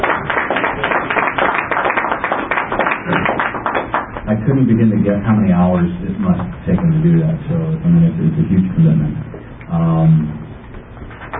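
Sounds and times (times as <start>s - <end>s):
crowd applause: 0.0s - 4.2s
speech: 4.5s - 10.3s.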